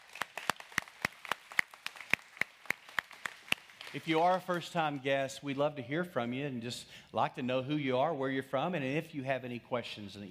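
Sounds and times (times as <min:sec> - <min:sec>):
audience hand clapping: 0:00.0 - 0:05.1
speech: 0:03.9 - 0:10.3.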